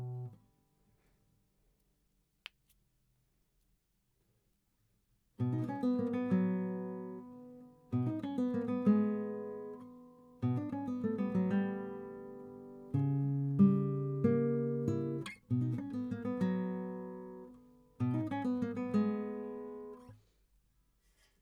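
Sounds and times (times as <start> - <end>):
guitar: 0.0 - 0.5, 5.4 - 20.2.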